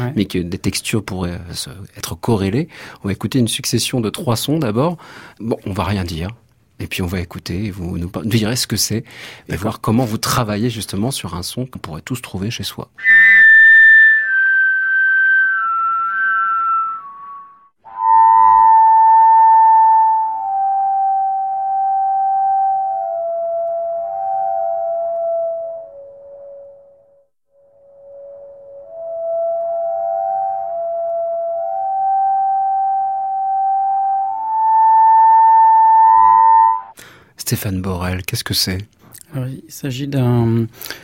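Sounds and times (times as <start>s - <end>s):
speech: 0.1s - 13.4s, 37.5s - 41.0s
blowing into grey ribbed electrical conduit: 13.0s - 26.6s, 27.8s - 37.0s.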